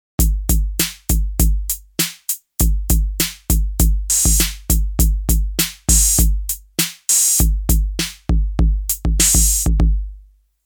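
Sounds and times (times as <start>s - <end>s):
808 drum machine on tape: 0.2s - 10.2s.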